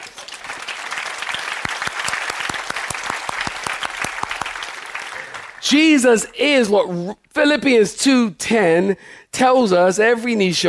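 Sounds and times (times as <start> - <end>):
audience clapping: 0.0 - 6.2
speech: 5.6 - 10.6.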